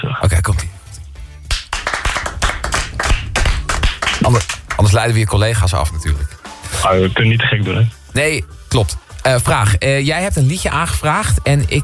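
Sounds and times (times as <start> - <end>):
soft applause: 1.4 - 4.9
speech: 4.3 - 11.8.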